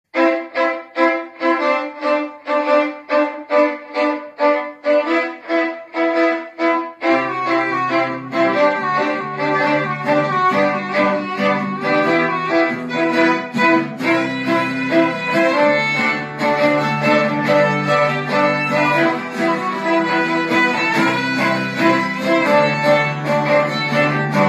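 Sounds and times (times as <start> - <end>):
violin: 0.1 - 24.4.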